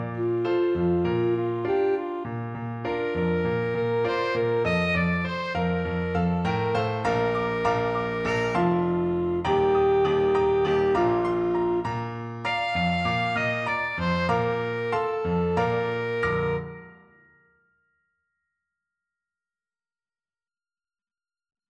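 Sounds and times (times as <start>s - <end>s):
alto saxophone: 0.0s - 17.0s.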